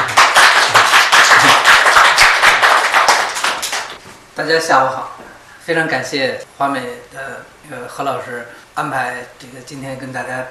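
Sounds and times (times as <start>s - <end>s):
audience applause: 0.0s - 4.0s
speech: 4.4s - 10.4s.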